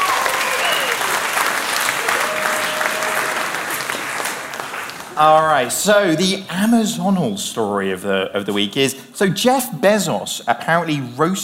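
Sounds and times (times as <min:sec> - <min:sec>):
audience applause: 0:00.0 - 0:05.8
speech: 0:05.2 - 0:11.4.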